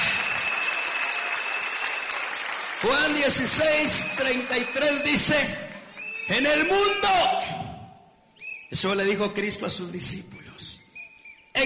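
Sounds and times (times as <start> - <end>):
audience applause: 0.0 - 6.1
speech: 2.8 - 5.7, 6.3 - 7.6, 8.7 - 10.8.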